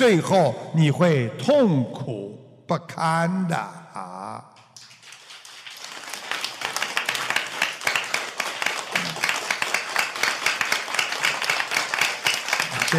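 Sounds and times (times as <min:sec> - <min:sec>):
speech: 0:00.0 - 0:04.5
audience applause: 0:04.8 - 0:12.9.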